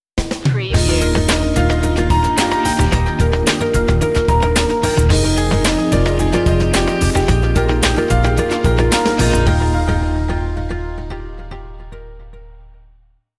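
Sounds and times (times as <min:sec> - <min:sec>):
bright corporate music: 0:00.5 - 0:12.8.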